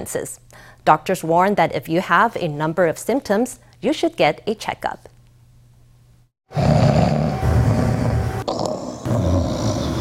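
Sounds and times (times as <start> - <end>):
speech: 0.0 - 5.1
loud snoring: 6.5 - 9.9.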